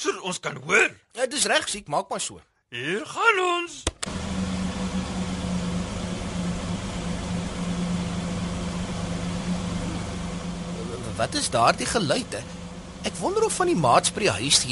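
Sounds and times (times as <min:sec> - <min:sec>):
speech: 0:00.2 - 0:04.2, 0:11.2 - 0:14.7
taxi engine running smoothly: 0:04.0 - 0:14.7.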